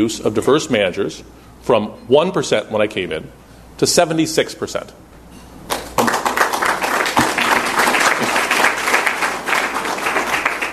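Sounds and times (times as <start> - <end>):
speech: 0.0 - 5.1
audience applause: 5.7 - 10.7.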